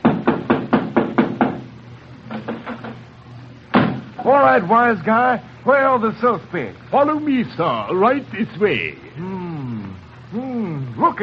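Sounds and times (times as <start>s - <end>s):
knocking at a door: 0.0s - 1.7s, 3.7s - 4.1s
speech: 4.2s - 9.3s.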